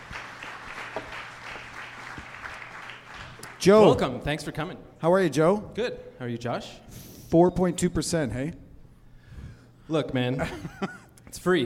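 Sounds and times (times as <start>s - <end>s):
live audience applause greeting guests at a show taping: 0.0s - 4.0s
speech: 3.6s - 8.6s, 9.9s - 11.6s.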